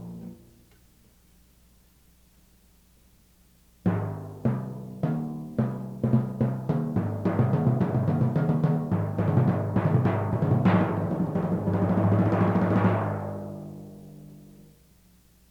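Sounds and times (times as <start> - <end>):
timpani: 3.9 - 14.5.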